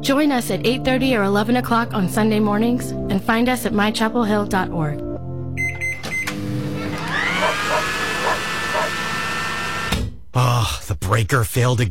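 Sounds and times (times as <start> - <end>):
speech: 0.0 - 5.1, 10.6 - 11.9
hair dryer running: 6.3 - 10.0.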